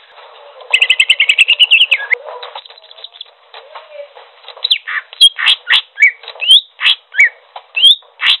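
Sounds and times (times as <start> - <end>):
Greater green leafbird song: 0.7 - 3.3, 4.6 - 8.3.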